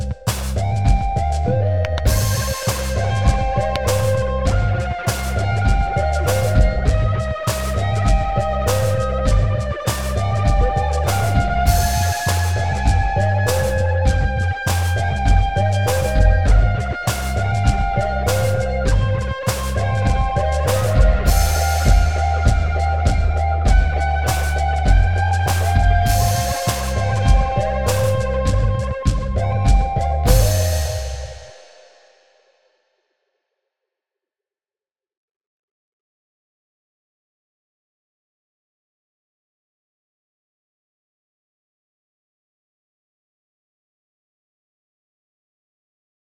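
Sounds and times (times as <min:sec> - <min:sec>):
sine wave tone: 0:00.8 - 0:07.3, 0:07.9 - 0:31.6.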